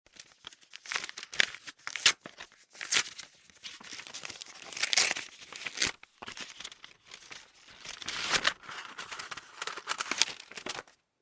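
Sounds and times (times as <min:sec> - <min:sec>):
envelope being opened: 0:00.1 - 0:11.0.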